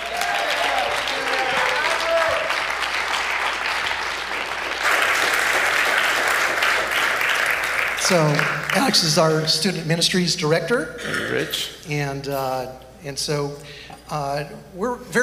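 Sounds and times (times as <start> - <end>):
audience applause welcoming a speaker: 0.0 - 9.4
speech: 8.1 - 15.2.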